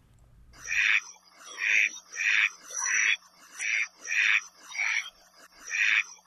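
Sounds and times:
Hawaiian duck quacking: 0.6s - 6.1s.

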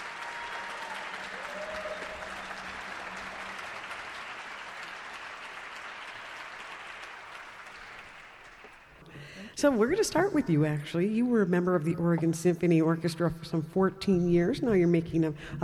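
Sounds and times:
audience applause for orchestra: 0.0s - 9.0s
speech: 9.6s - 15.6s.

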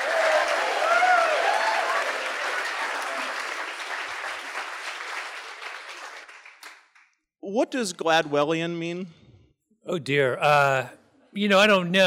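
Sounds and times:
live audience at the White Hart Inn in Salisbury, Connecticut applauding: 0.0s - 7.2s
speech: 7.5s - 9.2s, 9.9s - 12.0s.

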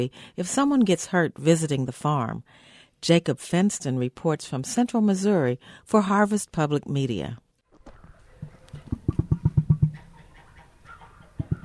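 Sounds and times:
speech: 0.0s - 7.4s
emus calling back and forth: 7.9s - 11.6s.

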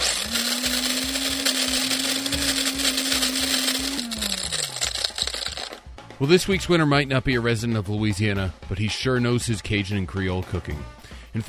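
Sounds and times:
grinder used to draw a weekly quiz winner whirring: 0.0s - 5.8s
irregular rattling and clattering in a grinder: 0.0s - 5.9s
speech: 6.2s - 11.4s.

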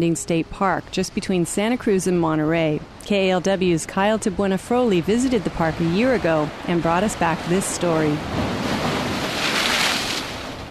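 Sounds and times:
speech: 0.0s - 8.7s
ocean surf on a beach: 2.4s - 10.6s
strong wind on a beach: 2.6s - 10.6s.

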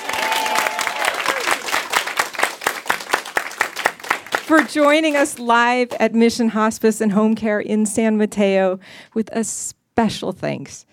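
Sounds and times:
audience applause at a live community event at a hospice in San Mateo: 0.0s - 5.4s
speech: 4.5s - 10.9s.

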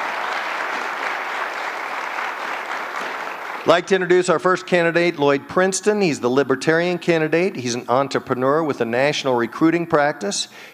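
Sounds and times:
audience applause: 0.0s - 4.0s
speech: 3.6s - 10.7s.

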